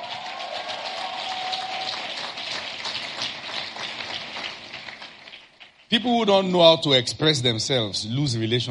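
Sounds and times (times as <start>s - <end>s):
audience clapping: 0.0s - 6.5s
speech: 5.9s - 8.6s.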